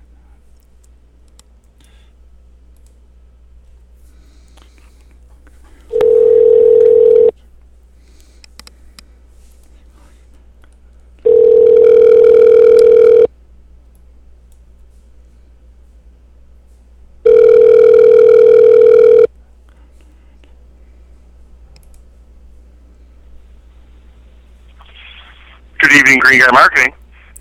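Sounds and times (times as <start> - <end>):
telephone ringback tone on an outgoing call to a mobile number: 5.9 - 7.3, 11.2 - 13.3, 17.2 - 19.3
speech: 26.1 - 27.0.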